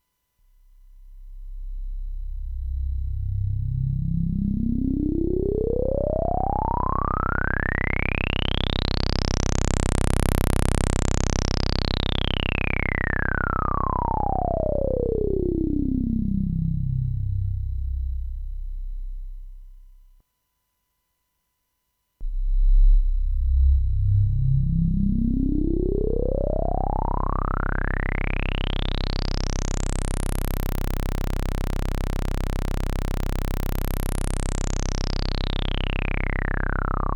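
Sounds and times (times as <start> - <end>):
Moog synthesizer filter envelope sweep: 0.6 - 20.2, 22.2 - 37.1.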